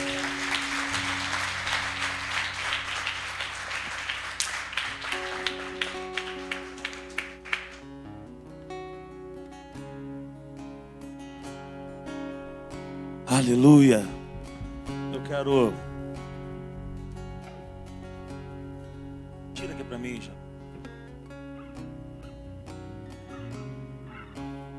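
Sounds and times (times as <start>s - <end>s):
crowd applauding: 0.0s - 8.2s
sustained musical backdrop: 0.0s - 24.7s
speech: 13.4s - 14.2s, 15.3s - 15.9s.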